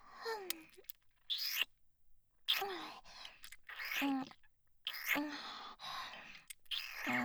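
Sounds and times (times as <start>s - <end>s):
fellatio sounds: 0.3s - 1.6s, 2.5s - 4.0s, 6.3s - 7.1s.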